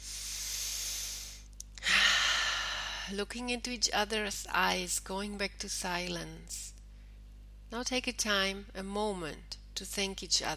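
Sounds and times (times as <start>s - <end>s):
deep breath in during a guided partner session: 0.0s - 3.1s
speech: 3.1s - 6.7s, 7.7s - 10.5s.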